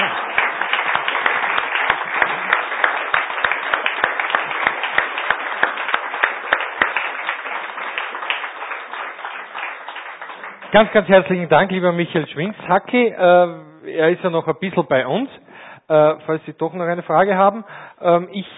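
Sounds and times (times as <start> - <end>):
audience applause: 0.0 - 12.1
speech: 10.7 - 18.5.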